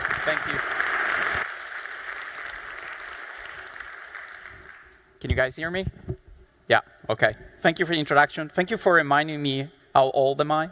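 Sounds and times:
audience applause: 0.0 - 4.9
speech: 0.2 - 0.8, 5.2 - 6.0, 6.7 - 10.7.

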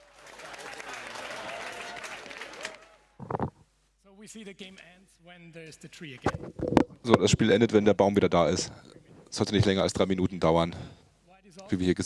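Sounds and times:
audience applause: 0.0 - 3.2
speech: 4.3 - 11.0, 11.7 - 12.0.

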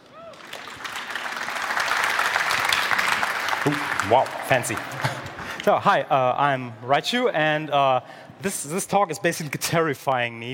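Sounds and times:
audience applauding a speaker at a talk: 0.0 - 5.6
speech: 3.6 - 10.5.

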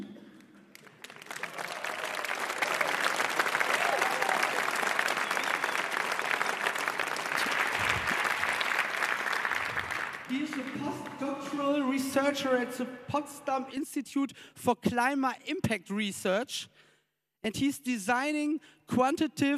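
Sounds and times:
audience clapping: 0.0 - 11.8
speech: 10.9 - 19.5.

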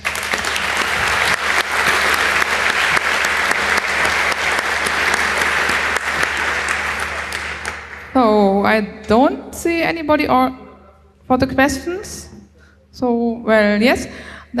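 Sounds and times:
crowd applauding: 0.0 - 8.2
speech: 8.7 - 10.6, 11.3 - 12.3, 12.9 - 14.5.

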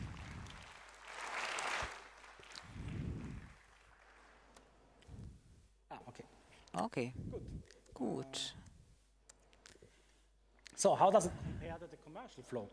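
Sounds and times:
audience applause: 0.0 - 4.6
speech: 6.2 - 8.7, 10.8 - 12.7.

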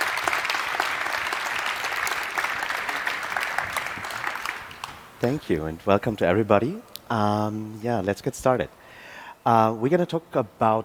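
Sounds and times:
audience applause: 0.0 - 5.0
speech: 5.2 - 8.8, 9.4 - 10.8.

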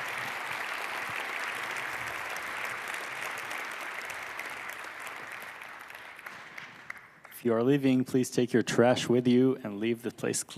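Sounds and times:
audience applause after a talk: 0.0 - 7.4
speech: 7.4 - 10.5.

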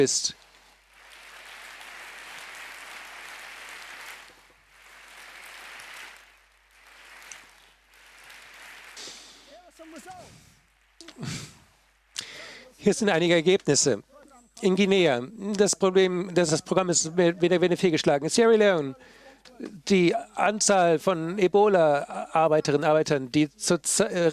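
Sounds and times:
speech: 0.0 - 0.4, 12.8 - 24.3
audience applause: 0.0 - 12.6.

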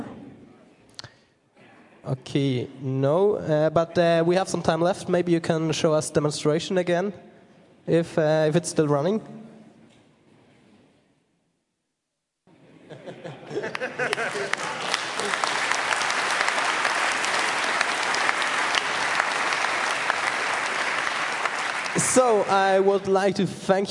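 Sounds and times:
speech: 2.1 - 7.3, 7.9 - 9.4, 22.2 - 23.9
laughter: 12.6 - 15.8
audience applause: 13.5 - 23.1.

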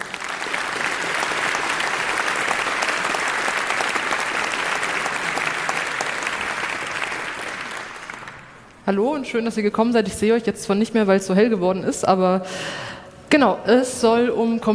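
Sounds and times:
audience applause: 0.0 - 8.8
speech: 8.9 - 14.7.

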